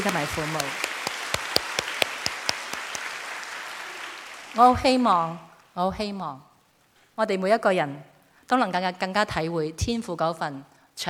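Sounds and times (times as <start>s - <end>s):
speech: 0.0s - 0.9s, 4.5s - 6.5s, 7.2s - 11.0s
audience applause: 0.0s - 4.6s.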